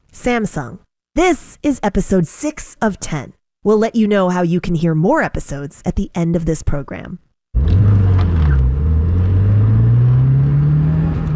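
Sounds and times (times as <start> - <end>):
speech: 0.2 - 7.2
sedan engine accelerating through a multi-story parking garage: 7.6 - 11.3.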